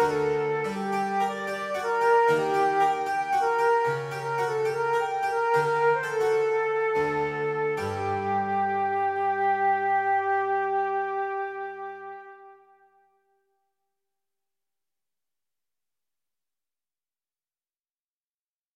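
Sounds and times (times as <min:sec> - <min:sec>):
flute sonata: 0:00.0 - 0:13.1.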